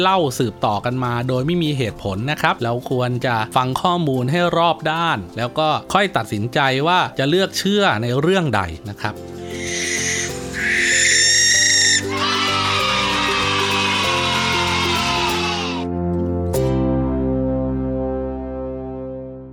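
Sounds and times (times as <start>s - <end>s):
speech: 0.0s - 9.9s
steady music: 0.0s - 19.5s
barn owl screeching: 9.4s - 15.9s.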